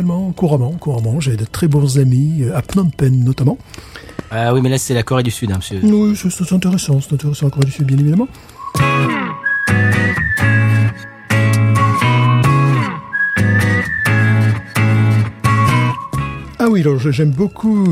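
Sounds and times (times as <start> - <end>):
speech: 0.0 - 9.2, 16.8 - 17.9
whistling in western-style music intro: 8.4 - 17.9.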